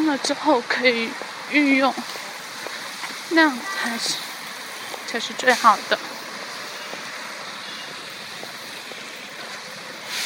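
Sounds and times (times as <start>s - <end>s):
sudden rain falling: 0.0s - 10.2s
speech: 0.1s - 2.2s, 3.3s - 4.3s, 5.1s - 6.1s.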